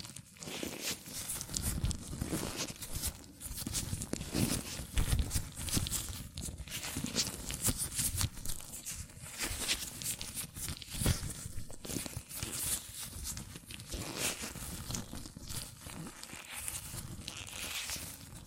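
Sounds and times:
latex gloves rubbing and squeaking against hands: 0.6s - 18.2s.

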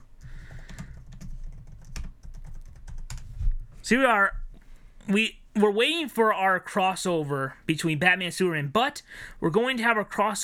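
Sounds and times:
typing on a computer keyboard: 0.2s - 3.3s
speech: 3.8s - 4.4s, 5.0s - 10.4s.

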